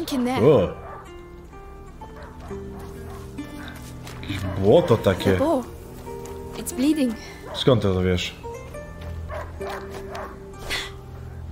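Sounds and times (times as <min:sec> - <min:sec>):
speech: 0:00.0 - 0:00.8, 0:04.3 - 0:05.8, 0:06.6 - 0:08.4
video game dog barking: 0:00.7 - 0:01.2, 0:02.0 - 0:05.5, 0:07.4 - 0:07.8, 0:09.0 - 0:10.6.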